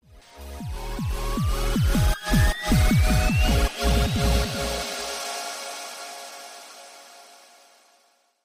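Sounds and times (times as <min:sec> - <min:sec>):
game background music: 0:00.0 - 0:06.3.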